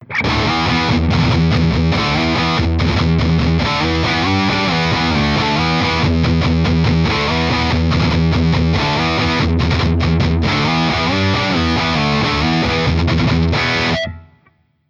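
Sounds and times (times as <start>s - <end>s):
metal music: 0.0s - 14.2s.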